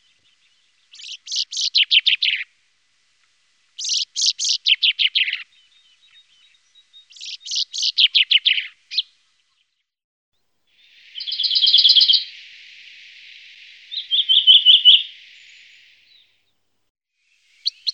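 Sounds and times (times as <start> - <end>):
Common chaffinch trilling song: 0.0 - 2.5, 3.8 - 9.1, 10.8 - 16.4, 17.2 - 17.9.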